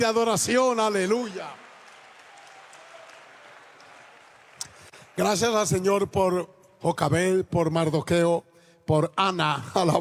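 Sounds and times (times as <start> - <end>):
speech: 0.0 - 1.6, 5.2 - 9.9
audience applause: 0.7 - 5.8.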